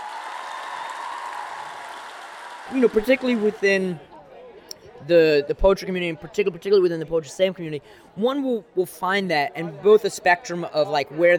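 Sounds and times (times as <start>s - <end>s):
poetry slam crowd clapping for a poet: 0.0s - 4.0s
speech: 2.7s - 4.1s, 5.0s - 11.3s.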